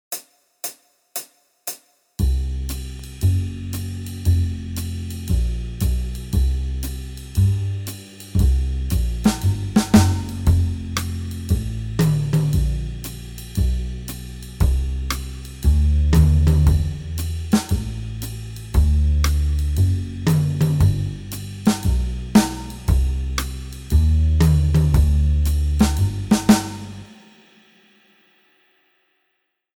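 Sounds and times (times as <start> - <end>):
jazz backing music: 2.4 - 27.1.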